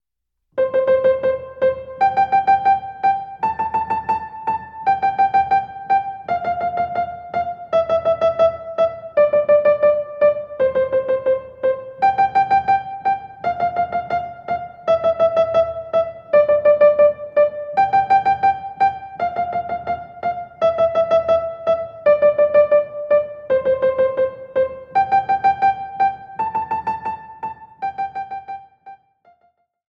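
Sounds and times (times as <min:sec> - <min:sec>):
piano melody variation played right hand only: 0:00.6 - 0:29.4.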